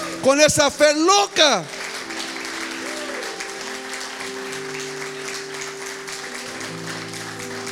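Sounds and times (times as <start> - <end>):
speech: 0.2 - 1.8
audience applause: 1.0 - 7.6.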